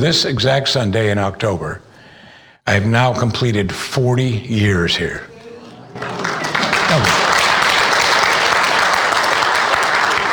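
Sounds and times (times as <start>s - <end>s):
speech: 0.0s - 1.9s, 2.6s - 5.3s
audience applause: 5.9s - 10.3s.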